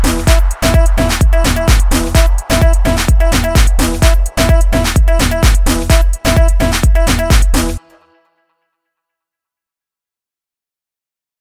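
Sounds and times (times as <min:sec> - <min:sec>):
music loop in E: 0:00.0 - 0:08.2.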